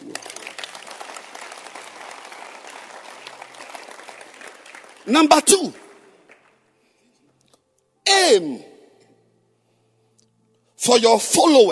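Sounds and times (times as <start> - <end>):
audience clapping hands: 0.0 - 6.7
speech: 5.0 - 5.8, 8.3 - 8.7, 10.8 - 11.6.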